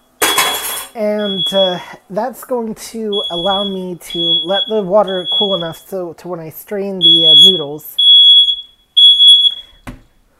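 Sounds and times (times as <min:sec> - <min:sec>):
smoke alarm beeping: 0:00.0 - 0:02.0, 0:03.1 - 0:05.9, 0:07.0 - 0:09.8
speech: 0:01.0 - 0:08.0.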